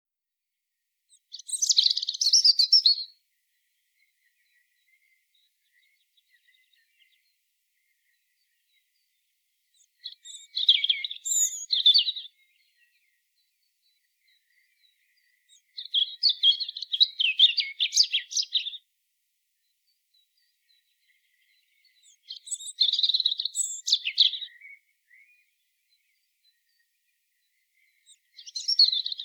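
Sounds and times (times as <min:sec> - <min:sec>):
European robin song: 0:01.1 - 0:29.2.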